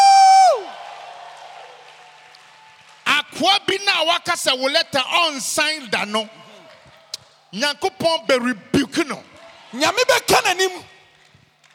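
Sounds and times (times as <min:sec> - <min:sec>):
audience clapping: 0:00.5 - 0:04.2, 0:09.0 - 0:11.7
speech: 0:03.4 - 0:06.4, 0:07.5 - 0:11.0.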